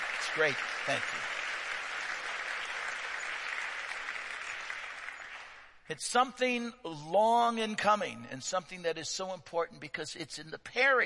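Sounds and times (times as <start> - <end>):
audience round of applause: 0.0 - 5.8
speech: 0.4 - 1.4, 5.9 - 11.0.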